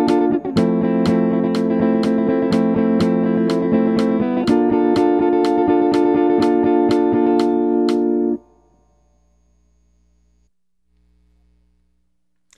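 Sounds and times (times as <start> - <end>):
jazz music: 0.0 - 8.4.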